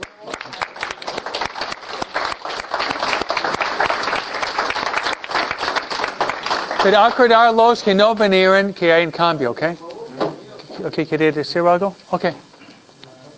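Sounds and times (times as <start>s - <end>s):
audience applause: 0.0s - 7.8s
speech: 6.8s - 9.8s, 10.8s - 12.5s.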